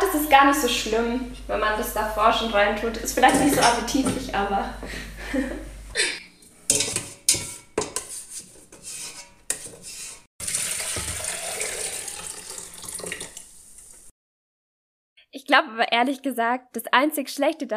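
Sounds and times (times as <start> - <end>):
speech: 0.3 - 6.2, 15.6 - 17.7
laughter: 5.1 - 5.5
scrubbing and rinsing in a sink: 6.7 - 14.1
water running in a sink while washing it out: 10.4 - 14.1.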